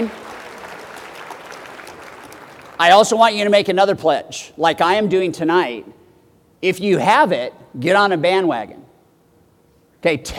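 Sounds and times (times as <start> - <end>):
speech: 0.0 - 0.2, 2.8 - 6.0, 6.6 - 8.9, 10.0 - 10.3
audience applause: 0.0 - 3.0.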